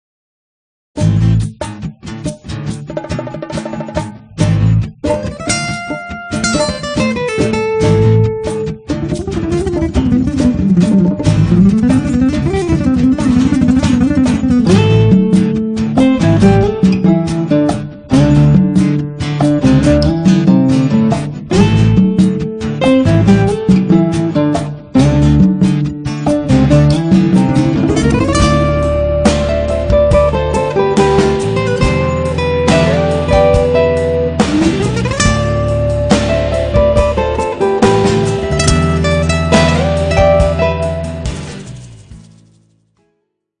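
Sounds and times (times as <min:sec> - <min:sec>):
60s jazz music: 0:04.4 - 0:41.9.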